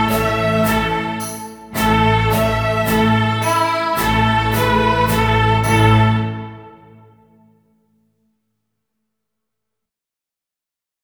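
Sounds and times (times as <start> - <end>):
full ensemble playing: 0.0 - 7.1.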